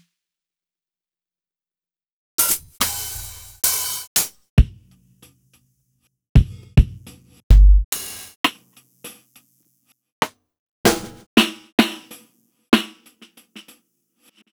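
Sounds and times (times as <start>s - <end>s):
layered Roland MV8800 drums: 2.4s - 5.4s, 6.4s - 9.4s, 10.9s - 13.8s.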